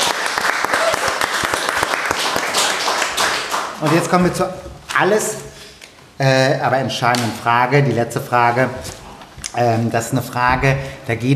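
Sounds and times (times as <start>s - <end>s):
audience applause: 0.0s - 4.2s
speech: 3.8s - 5.5s, 6.2s - 9.0s, 9.6s - 11.3s.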